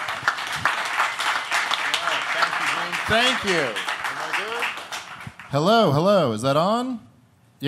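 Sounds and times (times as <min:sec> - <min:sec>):
audience applause: 0:00.0 - 0:05.5
speech: 0:03.1 - 0:03.9, 0:05.5 - 0:07.6.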